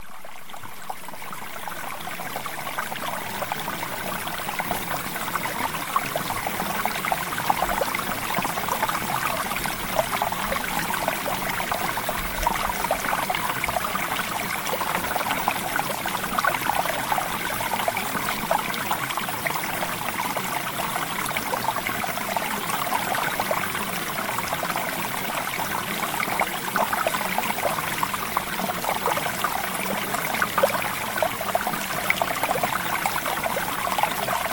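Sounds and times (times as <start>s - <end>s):
water: 0.0s - 34.5s.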